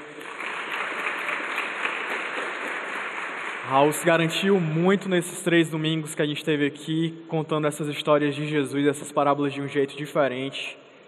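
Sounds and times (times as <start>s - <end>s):
crowd applauding: 0.0s - 4.7s
speech: 3.7s - 10.8s.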